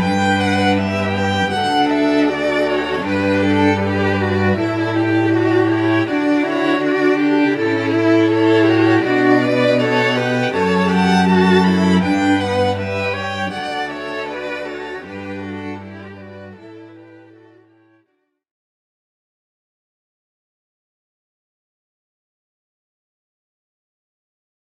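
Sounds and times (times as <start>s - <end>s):
string quartet: 0.0s - 18.1s.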